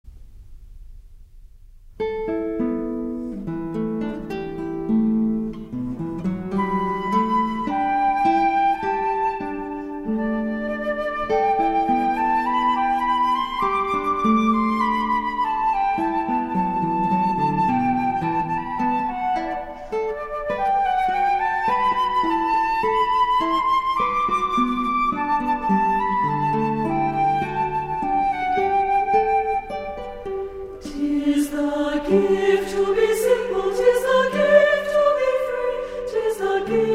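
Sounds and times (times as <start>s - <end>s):
guitar: 2.0s - 36.9s
flute: 3.5s - 36.9s
chorus singing: 30.8s - 36.9s.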